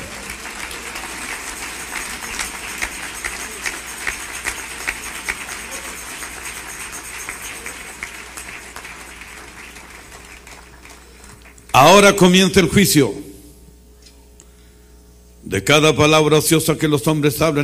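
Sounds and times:
audience applause: 0.0s - 11.8s
speech: 11.8s - 13.2s, 15.7s - 17.6s.

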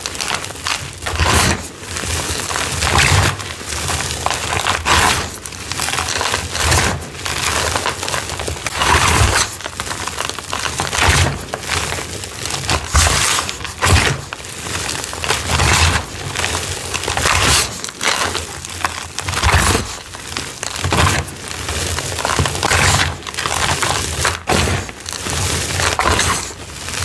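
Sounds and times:
dyed gym chalk and cornstarch being crushed: 0.0s - 27.0s.

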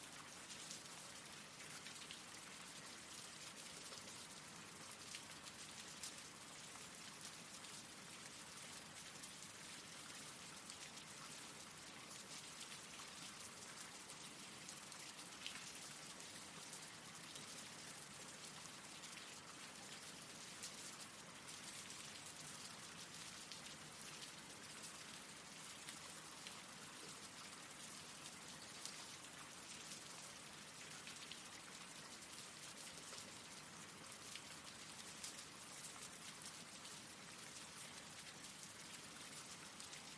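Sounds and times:
rain falling: 0.0s - 40.1s.

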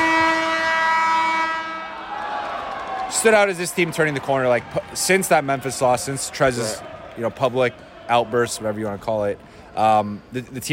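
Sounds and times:
buzzer: 0.0s - 1.8s
speech: 3.2s - 10.7s.

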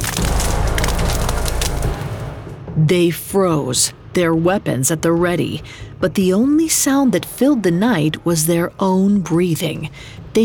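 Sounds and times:
branches cracking: 0.0s - 2.4s
speech: 2.8s - 10.4s.

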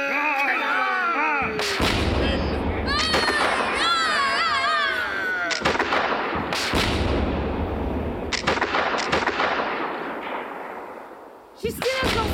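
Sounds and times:
voices shouting: 0.0s - 6.3s, 11.6s - 12.3s
ship's cannon broadside booming: 1.5s - 3.9s, 5.6s - 11.3s.

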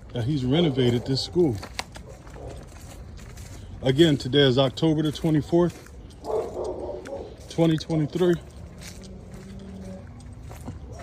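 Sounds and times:
steady noise: 0.0s - 11.0s
speech: 0.1s - 1.8s, 3.8s - 5.9s, 7.6s - 8.5s
dogs barking near a school: 0.4s - 3.1s, 5.7s - 11.0s.

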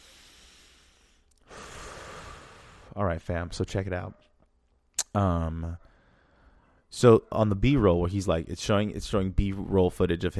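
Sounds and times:
deep breath taken together: 0.0s - 3.0s, 5.8s - 6.9s
speech: 3.0s - 4.3s, 5.2s - 5.9s, 6.9s - 10.3s.

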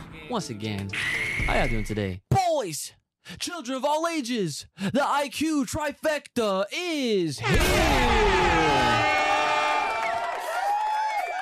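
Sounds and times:
speech: 0.3s - 9.0s
canned applause sound effect of crowd cheering and whooping: 7.4s - 11.4s.

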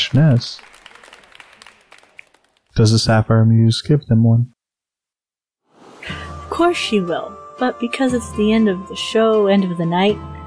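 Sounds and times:
crowd cheering for an encore: 0.0s - 3.4s
speech: 0.1s - 0.7s, 2.8s - 4.6s, 6.5s - 10.4s.

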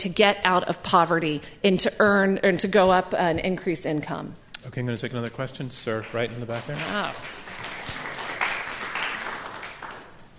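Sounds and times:
speech: 0.0s - 7.6s
audience applause: 5.9s - 10.3s.

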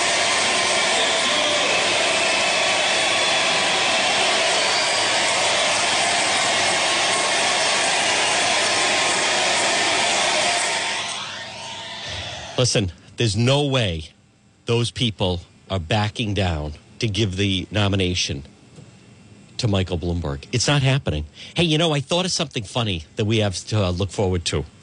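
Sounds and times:
crowd cheering: 0.0s - 12.6s
speech: 12.6s - 18.5s, 19.6s - 24.8s.

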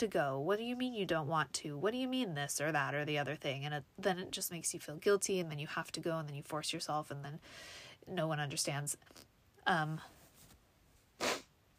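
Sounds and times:
speech: 0.0s - 10.2s
person sniffling: 11.2s - 11.5s.

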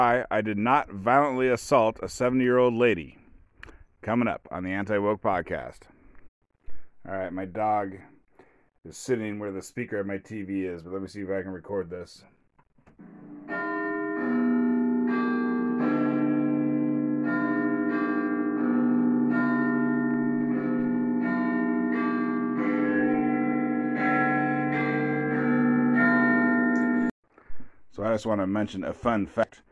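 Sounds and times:
speech: 0.0s - 3.2s, 4.0s - 6.0s, 7.0s - 8.1s, 8.8s - 12.3s, 13.0s - 13.6s, 28.0s - 29.6s
clock chime playing a bell melody: 13.4s - 27.1s.

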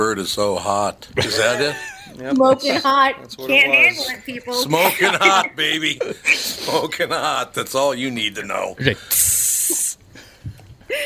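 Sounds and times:
speech: 0.1s - 9.4s
laughter: 1.2s - 3.0s, 4.2s - 7.5s
sizzling hiss sound effect: 9.0s - 10.0s.

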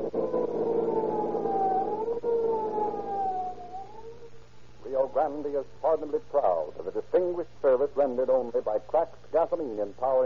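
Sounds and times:
police car siren wailing: 0.0s - 4.4s
speech: 5.2s - 10.2s.

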